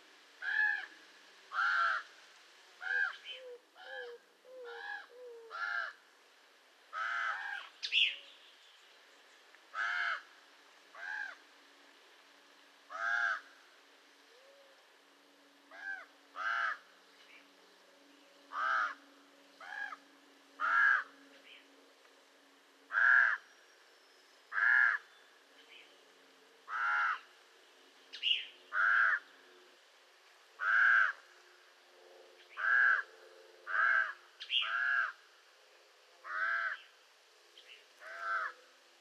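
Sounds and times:
raven calling: 0.4s - 2.1s, 2.8s - 6.0s, 6.9s - 8.2s, 9.7s - 11.4s, 12.9s - 13.6s, 15.7s - 16.9s, 18.5s - 21.6s, 22.9s - 23.5s, 24.5s - 25.1s, 26.6s - 27.4s, 28.2s - 29.7s, 30.6s - 31.3s, 32.4s - 35.2s, 36.2s - 36.9s, 38.0s - 38.7s.

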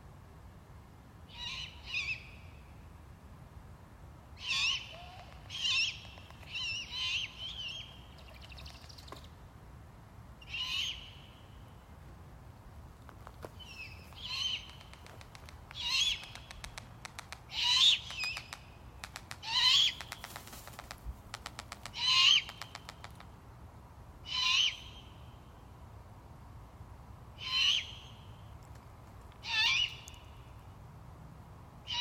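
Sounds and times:
Great Horned Owl hooting: 4.4s - 8.7s, 13.6s - 16.8s, 17.5s - 18.6s, 19.2s - 20.9s, 21.5s - 23.2s, 24.2s - 25.2s, 27.4s - 28.2s, 29.4s - 30.3s.

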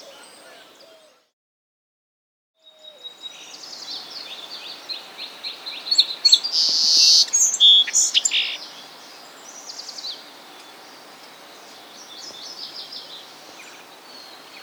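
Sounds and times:
song sparrow: 0.0s - 1.3s, 2.6s - 14.6s.

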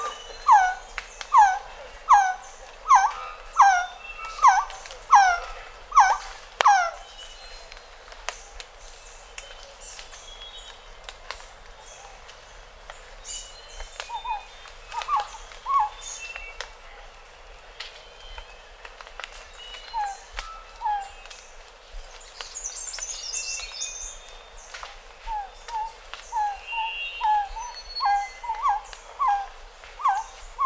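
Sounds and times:
Resplendent Quetzal calling: 0.0s - 7.2s, 13.8s - 16.8s, 19.6s - 21.6s, 23.5s - 30.6s.

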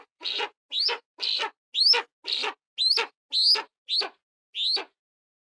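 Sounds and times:
eagle screech: 0.3s - 4.9s.

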